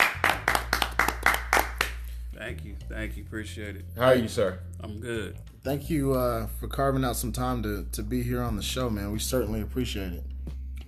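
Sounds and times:
hand clapping to welcome a guest on a show: 0.0 - 2.2
speech: 2.5 - 10.3.

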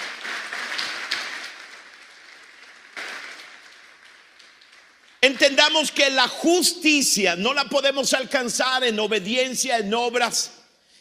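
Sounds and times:
audience applause: 0.0 - 5.9
speech: 5.3 - 10.6.

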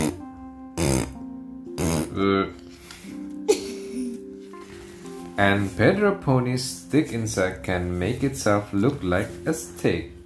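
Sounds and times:
person blowing raspberries imitating a gecko: 0.0 - 3.3
soft musical tone: 0.0 - 10.2
speech: 2.2 - 2.6, 5.4 - 10.2.

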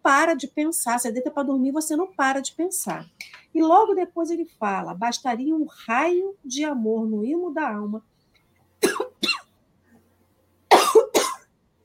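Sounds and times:
speech: 0.0 - 8.1
person coughing after choking on saliva: 8.8 - 9.5, 10.7 - 11.5.

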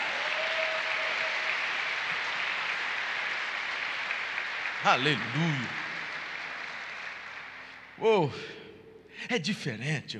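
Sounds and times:
audience applause: 0.0 - 8.0
speech: 4.8 - 5.8, 8.0 - 8.6, 9.2 - 10.1.

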